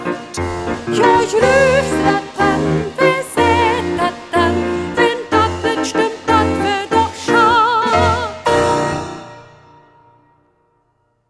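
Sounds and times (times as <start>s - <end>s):
person singing: 0.0s - 8.8s.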